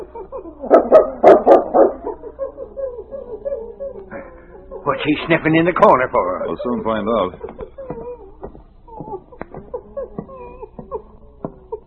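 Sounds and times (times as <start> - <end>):
dog barking and whining: 0.0 - 5.1, 7.6 - 11.8
laughter: 1.9 - 11.8
speech: 5.0 - 7.5.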